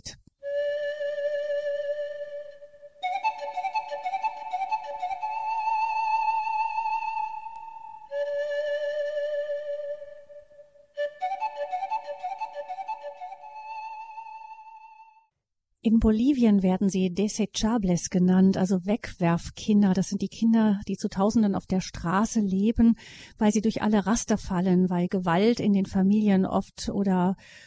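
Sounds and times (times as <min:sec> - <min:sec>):
music played on radio: 0:00.4 - 0:15.3
speech: 0:15.8 - 0:27.6.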